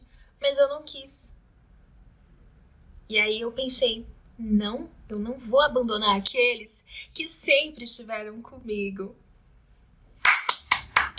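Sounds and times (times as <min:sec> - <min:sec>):
speech: 0:00.4 - 0:01.2, 0:03.1 - 0:09.2
hand claps: 0:10.2 - 0:11.1.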